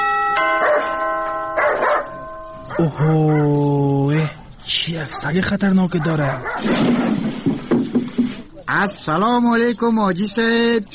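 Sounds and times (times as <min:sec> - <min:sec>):
doorbell ringing at a gate: 0:00.0 - 0:03.1
speech: 0:02.8 - 0:07.8, 0:08.7 - 0:10.9.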